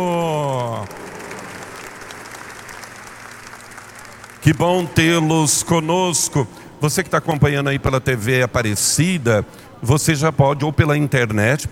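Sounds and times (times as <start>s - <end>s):
applause: 0.0s - 6.4s
speech: 4.4s - 11.7s.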